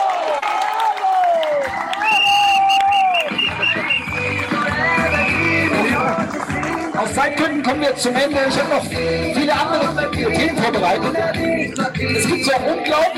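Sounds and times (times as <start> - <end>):
audience applause: 0.0 - 7.0
speech: 7.7 - 13.1.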